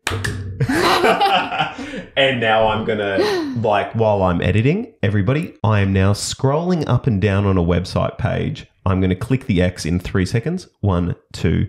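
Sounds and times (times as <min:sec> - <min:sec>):
single hand clap for audio sync: 0:00.0 - 0:00.5
speech: 0:00.1 - 0:01.6, 0:02.2 - 0:11.6
laughter: 0:00.6 - 0:03.7.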